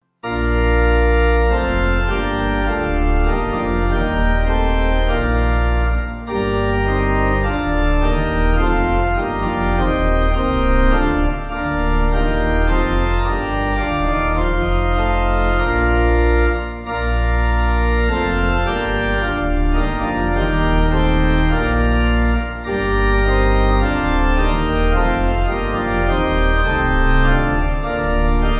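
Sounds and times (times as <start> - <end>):
church pipe organ backing music: 0.2 - 28.5.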